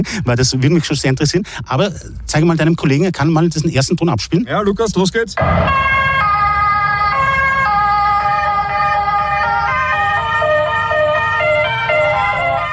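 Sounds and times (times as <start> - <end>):
speech: 0.0 - 6.2
ambulance siren: 5.4 - 12.7.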